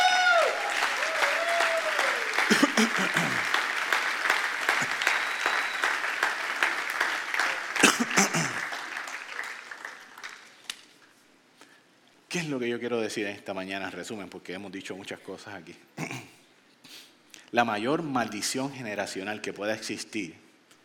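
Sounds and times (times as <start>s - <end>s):
audience applause: 0.0s - 10.6s
speech: 2.8s - 3.6s, 12.4s - 16.0s, 17.5s - 20.4s.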